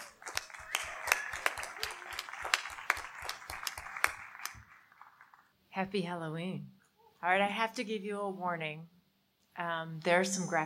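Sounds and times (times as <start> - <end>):
applause: 0.0 - 5.5
speech: 5.8 - 9.0, 9.6 - 10.6.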